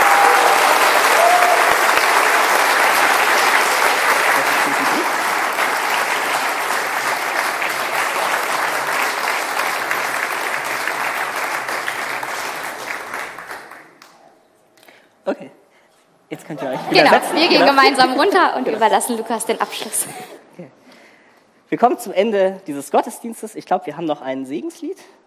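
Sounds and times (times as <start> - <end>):
audience applause: 0.0 - 14.0
speech: 17.0 - 20.4, 21.7 - 25.2.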